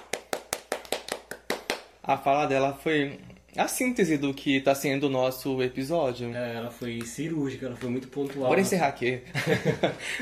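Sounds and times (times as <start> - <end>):
applause: 0.0 - 1.9
speech: 2.1 - 10.2
laughter: 9.3 - 10.2.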